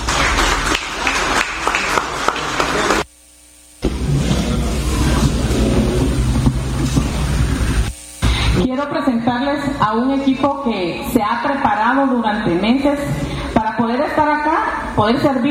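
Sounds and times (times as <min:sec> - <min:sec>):
crowd applause: 0:00.0 - 0:03.0, 0:03.8 - 0:08.6
speech: 0:08.8 - 0:15.4.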